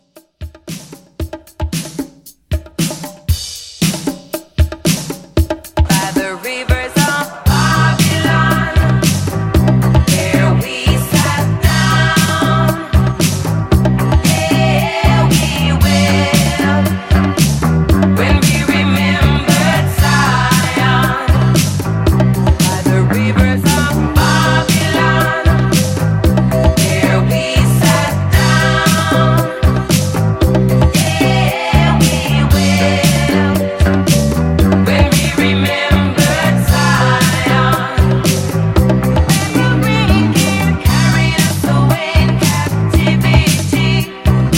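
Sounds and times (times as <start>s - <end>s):
1970s style drum beat: 0.0s - 44.5s.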